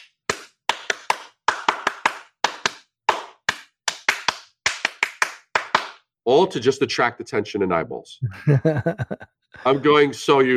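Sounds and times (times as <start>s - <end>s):
hands clapping: 0.0s - 6.0s
speech: 6.3s - 10.5s
laughter: 8.2s - 10.5s.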